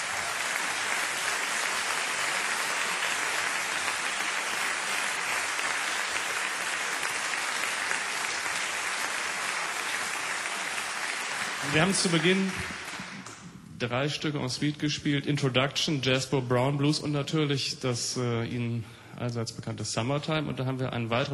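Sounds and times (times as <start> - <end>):
audience applause: 0.0 - 13.4
speech: 11.7 - 12.8, 13.8 - 21.3.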